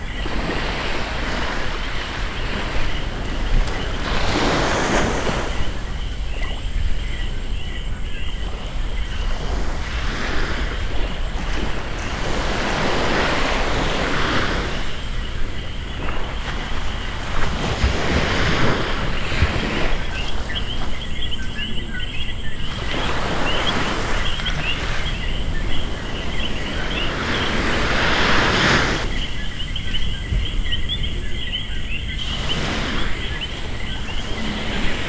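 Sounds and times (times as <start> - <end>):
insects: 0.0 - 35.0
waves on a beach: 0.0 - 35.0.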